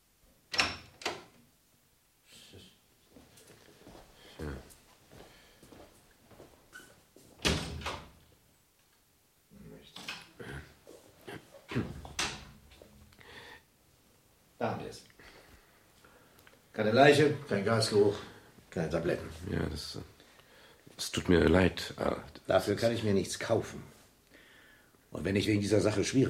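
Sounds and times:
apartment door unlocked with a caretaker's master key and opened: 0.5s - 1.3s
speech: 14.6s - 15.1s, 16.8s - 20.1s, 21.0s - 23.9s, 25.1s - 26.2s.

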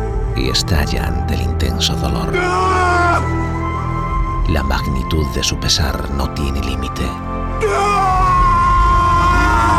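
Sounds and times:
speech: 0.4s - 3.5s, 4.5s - 8.2s
man weeping and wailing: 7.6s - 9.7s.

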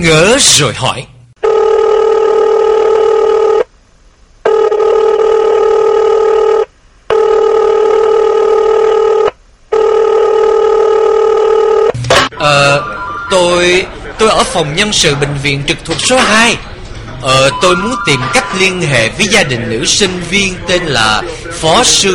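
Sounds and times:
speech: 0.0s - 1.1s, 12.4s - 22.1s
telephone ring tones of a call to a university student office: 1.4s - 3.7s, 4.5s - 14.0s.

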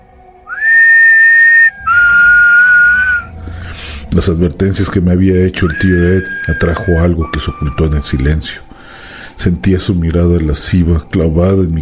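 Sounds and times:
eerie human whistling: 0.4s - 4.1s, 5.6s - 9.0s
speech: 4.1s - 8.7s, 9.4s - 11.7s.

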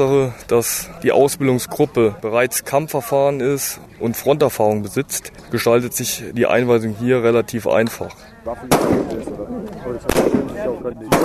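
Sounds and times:
speech: 0.0s - 11.2s
gunshots from Kurdish Peshmerga fighters on a shooting range near Erbil: 8.6s - 9.3s, 10.1s - 11.2s.

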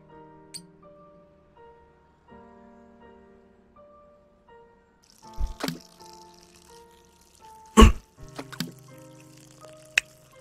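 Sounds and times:
plain water poured into a pot of meat while cooking: 5.1s - 10.3s.

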